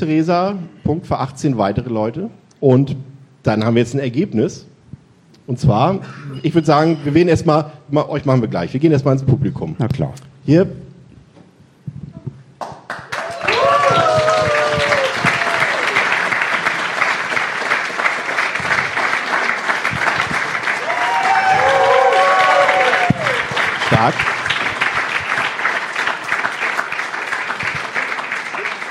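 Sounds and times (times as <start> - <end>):
speech: 0.0 - 4.7, 5.5 - 10.8, 24.0 - 24.3
audience applause: 12.7 - 28.9
voices cheering: 13.1 - 16.7, 20.6 - 24.1.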